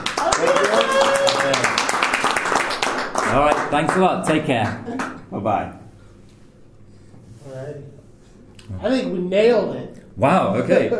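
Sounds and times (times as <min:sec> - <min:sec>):
small crowd clapping: 0:00.0 - 0:05.2
speech: 0:03.4 - 0:05.8, 0:07.4 - 0:08.0, 0:08.7 - 0:10.9.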